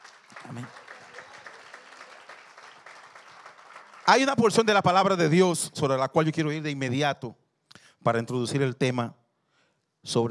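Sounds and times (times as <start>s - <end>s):
audience applause: 0.0s - 4.8s
speech: 0.5s - 0.8s, 4.1s - 7.4s, 8.0s - 9.2s, 10.0s - 10.2s.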